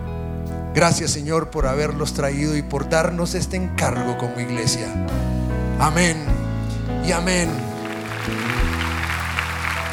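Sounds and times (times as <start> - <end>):
sustained low keyboard chords: 0.0 - 9.9
speech: 0.8 - 6.4, 7.0 - 8.5
crowd applause: 7.8 - 9.9.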